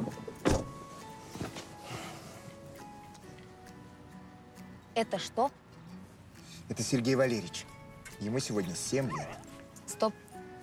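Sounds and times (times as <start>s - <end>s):
person getting into a car: 0.0s - 2.4s
speech: 5.0s - 5.6s, 6.7s - 10.2s.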